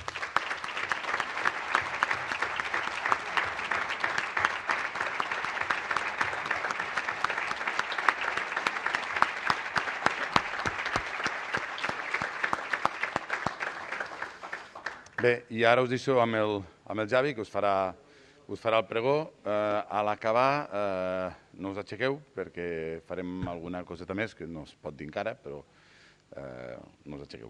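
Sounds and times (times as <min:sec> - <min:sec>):
audience applause: 0:00.0 - 0:15.3
speech: 0:15.2 - 0:27.4.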